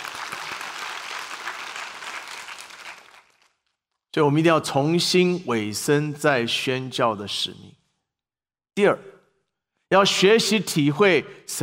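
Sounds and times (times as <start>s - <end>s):
audience applause: 0.0s - 3.6s
speech: 4.2s - 7.8s, 8.8s - 9.1s, 9.9s - 11.6s.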